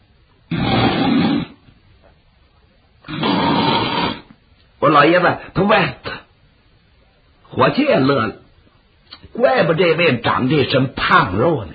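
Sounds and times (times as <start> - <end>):
voice imitating loud snoring: 0.5 - 1.6, 3.1 - 4.3
speech: 4.8 - 6.1, 7.6 - 8.4, 9.3 - 11.7.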